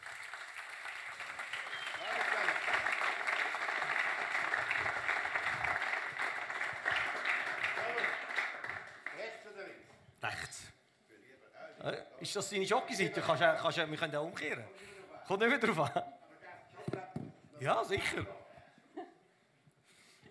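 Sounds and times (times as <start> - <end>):
audience applause: 0.0 - 9.4
speech: 12.3 - 16.0, 17.6 - 18.4.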